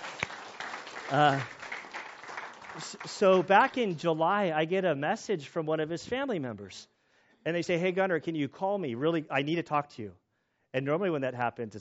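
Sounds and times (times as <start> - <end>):
audience clapping: 0.0 - 4.3
person cheering: 1.1 - 1.5
speech: 1.1 - 1.6, 2.8 - 11.7.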